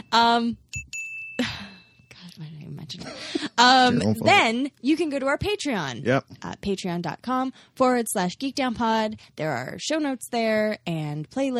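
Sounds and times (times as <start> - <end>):
bell dinging: 0.0 - 2.2
speech: 0.1 - 0.8, 2.4 - 11.5
brief voice: 3.9 - 4.3.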